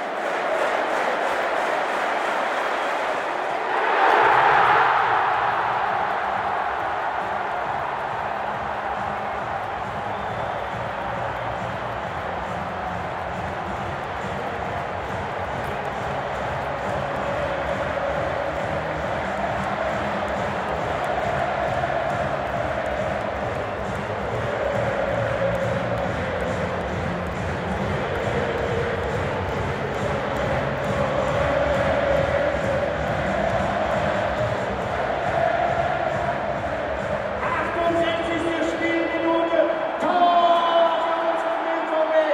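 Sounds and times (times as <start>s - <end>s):
stadium crowd cheering a BVB football goal: 0.0s - 42.3s.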